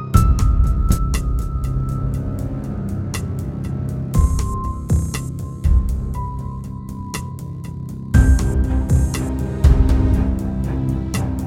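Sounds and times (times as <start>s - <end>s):
groove music: 0.1s - 11.4s.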